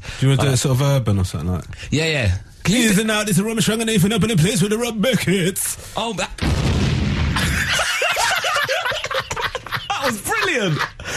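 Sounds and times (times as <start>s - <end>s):
speech: 0.2s - 6.4s, 10.5s - 10.9s
bomb explosion sound effect: 6.4s - 7.8s
laughter: 7.4s - 11.1s.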